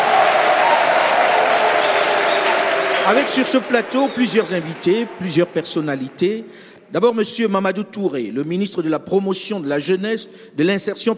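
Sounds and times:
live audience at a music festival in an amphitheatre applauding and cheering: 0.0 - 6.4
speech: 3.1 - 11.1.

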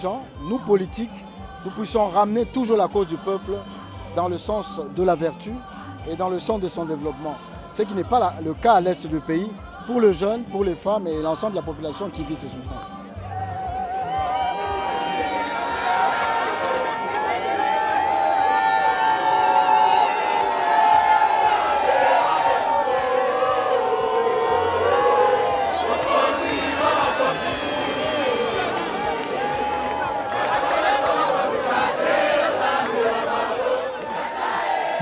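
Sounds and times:
speech: 0.0 - 13.0
huge crowd cheering at open-air mass: 13.2 - 35.0.

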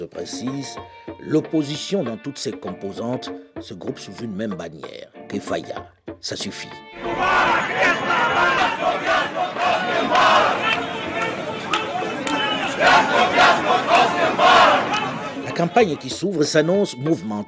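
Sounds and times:
speech: 0.0 - 9.4, 15.6 - 17.4
protest crowd chanting slogans: 6.9 - 15.5.

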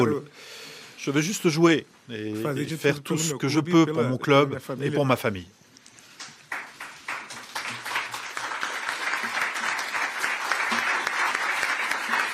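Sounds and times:
speech: 0.0 - 5.6
journalists applauding: 6.2 - 12.3.

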